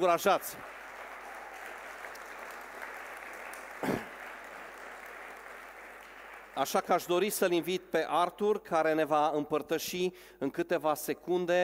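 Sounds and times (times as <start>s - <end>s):
speech: 0.0s - 0.8s, 6.6s - 11.6s
audience applause: 0.0s - 6.9s.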